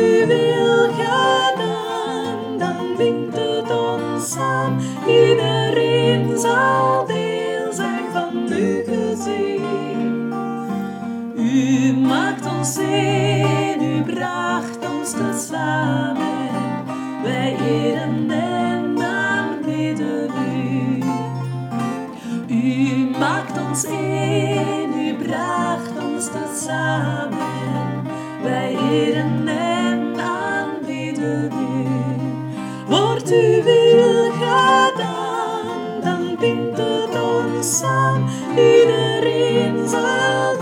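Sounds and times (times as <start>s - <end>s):
tutti soprano guitar: 0.0s - 40.5s.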